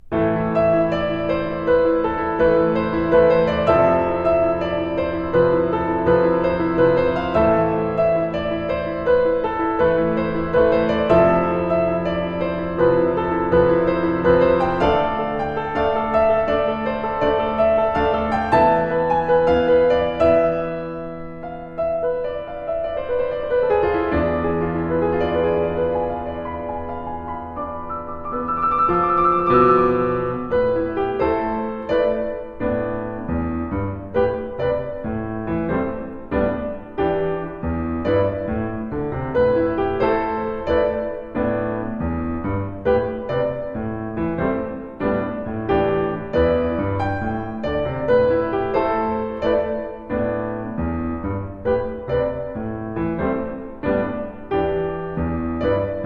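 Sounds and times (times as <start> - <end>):
piano: 0.0 - 56.0.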